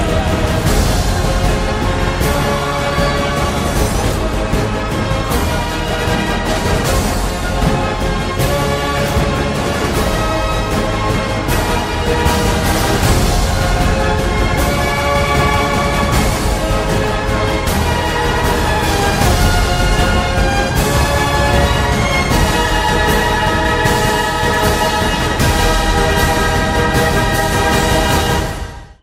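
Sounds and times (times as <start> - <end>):
heroic march music: 0.0 - 29.0.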